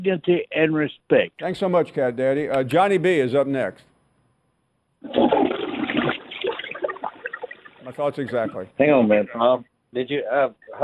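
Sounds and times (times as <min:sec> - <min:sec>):
speech: 0:00.0 - 0:03.9, 0:05.0 - 0:05.5, 0:07.9 - 0:10.8
toilet flushing: 0:05.1 - 0:08.0.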